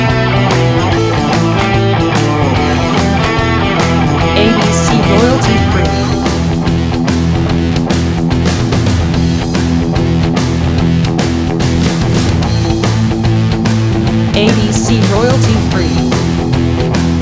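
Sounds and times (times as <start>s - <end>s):
blues rock music: 0.0s - 17.1s.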